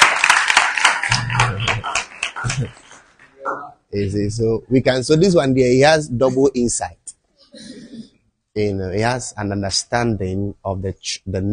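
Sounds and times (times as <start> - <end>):
audience clapping: 0.0 - 3.7
speech: 2.6 - 2.8, 3.5 - 7.0, 8.6 - 11.5.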